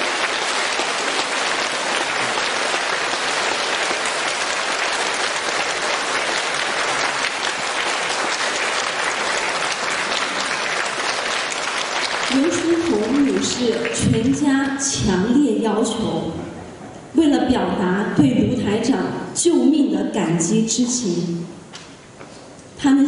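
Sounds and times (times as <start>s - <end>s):
warm audience applause: 0.0s - 14.4s
speech: 13.6s - 16.4s, 17.2s - 21.6s.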